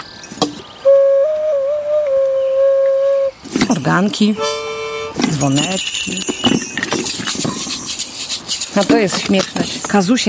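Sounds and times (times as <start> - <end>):
ocarina playing a steady tone: 0.8 - 3.4, 4.2 - 6.6
speech: 3.9 - 4.6, 5.4 - 6.7, 8.8 - 10.2.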